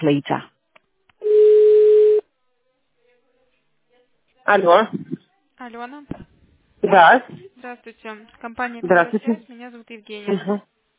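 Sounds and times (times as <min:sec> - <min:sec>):
speech: 0:00.0 - 0:00.5, 0:04.5 - 0:10.7
telephone busy signal beep: 0:01.2 - 0:02.2.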